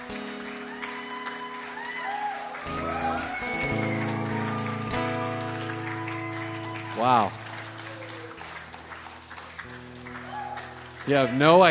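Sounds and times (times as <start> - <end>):
audience clapping and hollering: 0.0 - 11.6
speech: 7.0 - 7.4, 11.1 - 11.6.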